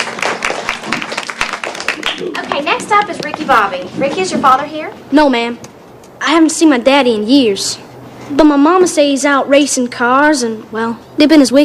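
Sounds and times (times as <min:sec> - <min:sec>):
sharp hand claps: 0:00.0 - 0:03.4
speech: 0:02.1 - 0:11.6.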